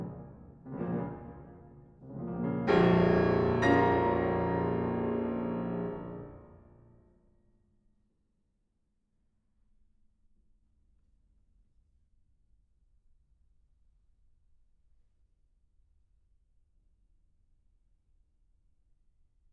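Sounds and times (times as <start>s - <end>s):
piano sonata in B flat minor: 0.0s - 7.0s.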